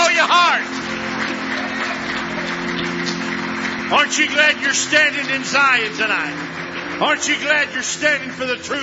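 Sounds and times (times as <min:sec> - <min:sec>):
church congregation clapping hands in praise: 0:00.0 - 0:08.8
speech: 0:03.9 - 0:08.8.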